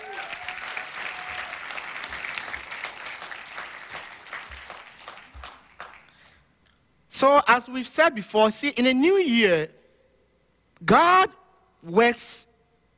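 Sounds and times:
audience applause: 0.0 - 6.4
speech: 7.2 - 9.8, 10.8 - 12.5.

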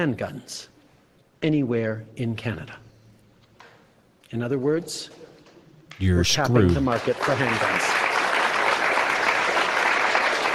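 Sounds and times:
speech: 0.0 - 0.7, 1.4 - 2.8, 4.3 - 5.2, 6.0 - 7.9
audience clapping: 5.9 - 10.5.

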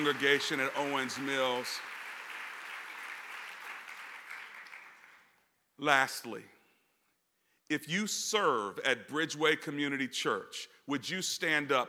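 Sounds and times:
speech: 0.0 - 2.0, 5.8 - 6.5, 7.7 - 11.8
audience applauding: 0.0 - 5.3.

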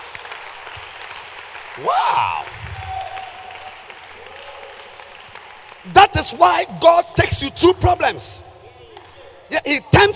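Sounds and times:
audience applause: 0.0 - 7.1
speech: 1.8 - 2.6, 5.9 - 8.5, 9.5 - 10.1.

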